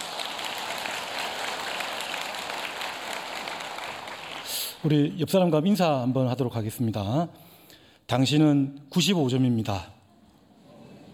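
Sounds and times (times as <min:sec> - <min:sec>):
audience applause: 0:00.0 - 0:04.8
speech: 0:04.8 - 0:07.5, 0:08.1 - 0:10.0.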